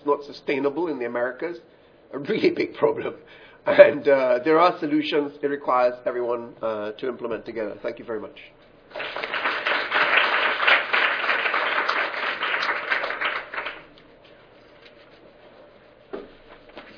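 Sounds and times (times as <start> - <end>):
speech: 0.1 - 9.2
audience applause: 8.9 - 13.9.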